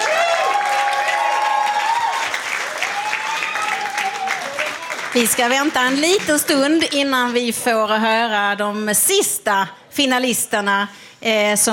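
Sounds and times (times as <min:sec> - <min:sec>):
high cheers and whoops: 0:00.0 - 0:05.0
audience applause: 0:00.0 - 0:06.6
speech: 0:05.2 - 0:11.7.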